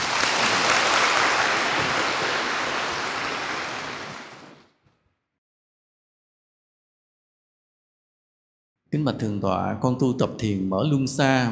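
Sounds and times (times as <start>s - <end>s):
audience applause: 0.0s - 4.7s
speech: 8.9s - 11.5s.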